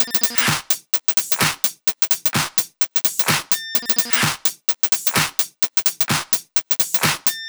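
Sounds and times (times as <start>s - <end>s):
drum kit at 128 BPM: 0.0s - 7.4s.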